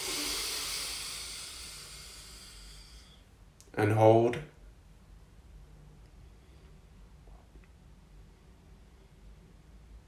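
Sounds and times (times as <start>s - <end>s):
full slow inhaled breath in a sleep-relaxation exercise: 0.0s - 3.3s
speech: 3.8s - 4.5s.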